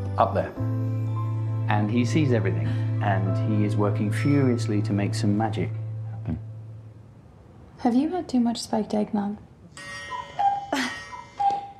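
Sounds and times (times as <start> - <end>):
speech: 0.2 - 0.8, 1.7 - 6.5, 7.8 - 10.0
clock chime: 9.7 - 11.7.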